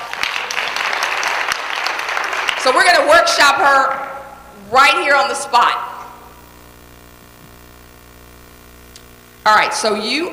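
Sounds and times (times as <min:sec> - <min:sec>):
audience applause: 0:00.0 - 0:02.7
speech: 0:02.6 - 0:04.1, 0:04.7 - 0:05.9, 0:09.5 - 0:10.3.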